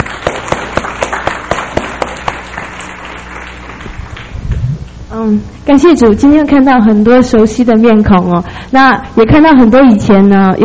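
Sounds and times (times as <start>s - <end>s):
audience applause welcoming performers: 0.0s - 4.4s
speech: 5.2s - 10.6s.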